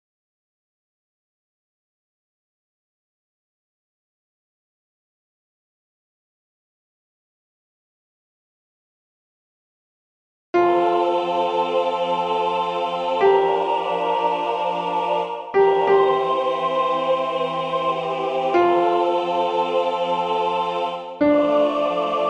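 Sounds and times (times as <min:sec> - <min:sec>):
alto singing a sacred song: 0:10.6 - 0:22.2.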